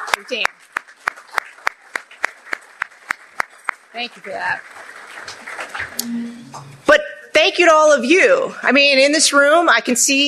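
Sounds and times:
room audience clapping: 0:00.0 - 0:06.9
speech: 0:00.2 - 0:00.8, 0:04.0 - 0:10.2.

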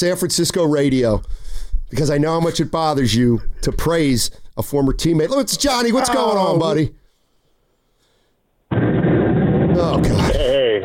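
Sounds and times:
speech: 0:00.0 - 0:07.0
gunshot sound effect: 0:08.7 - 0:10.6.

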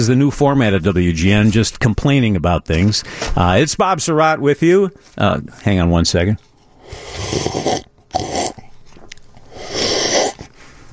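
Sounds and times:
speech: 0:00.0 - 0:08.5
loud slurp of a drink: 0:06.8 - 0:08.7, 0:09.4 - 0:10.6.

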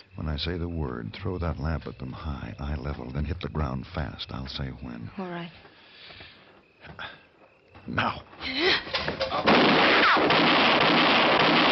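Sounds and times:
speech: 0:00.2 - 0:06.2, 0:06.9 - 0:07.2, 0:07.8 - 0:09.5
gunshot in a radio drama standoff: 0:09.3 - 0:11.7.

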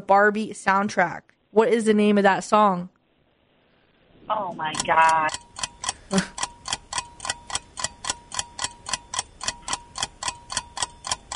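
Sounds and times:
speech: 0:00.0 - 0:03.0, 0:04.3 - 0:06.4
game timer ticking: 0:04.8 - 0:11.3.

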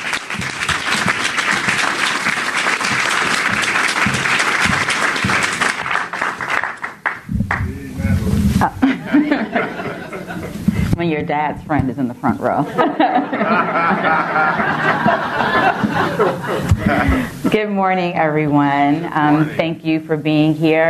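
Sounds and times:
audience applause: 0:00.0 - 0:08.2, 0:09.0 - 0:10.4, 0:13.2 - 0:17.2
laughter: 0:07.7 - 0:10.9, 0:12.5 - 0:17.8
speech: 0:11.0 - 0:20.8.

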